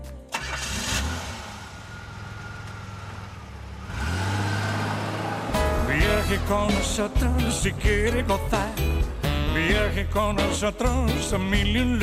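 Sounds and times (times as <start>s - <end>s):
car engine starting sound effect, cranking into idle and revving: 0.3s - 8.9s
speech: 6.3s - 8.9s, 9.6s - 12.0s.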